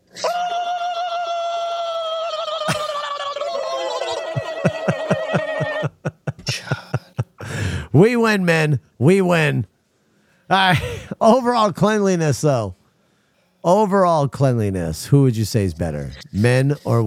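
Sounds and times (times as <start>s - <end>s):
man letting out a high strained victory screech: 0.1s - 6.0s
laughter: 2.5s - 7.5s
speech: 8.0s - 9.7s, 10.5s - 12.8s, 13.6s - 17.0s.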